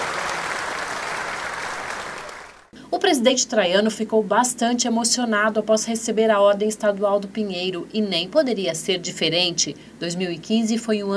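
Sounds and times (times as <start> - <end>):
audience applause at an official ceremony in Paraná, Brazil: 0.0 - 2.7
speech: 3.0 - 11.1.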